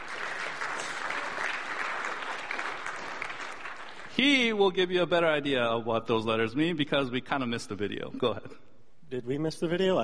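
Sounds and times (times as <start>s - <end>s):
audience applause: 0.0s - 4.2s
speech: 4.2s - 10.0s.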